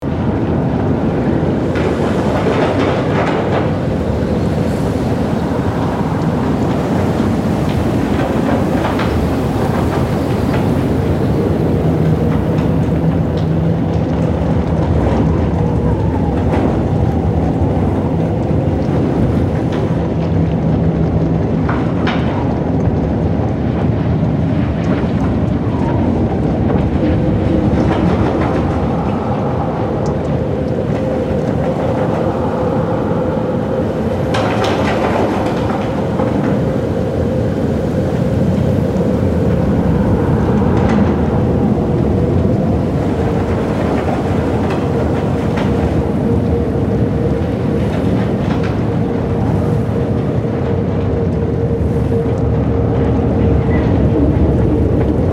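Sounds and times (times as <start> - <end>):
blizzard heard from inside a tent: 0.0 - 55.3.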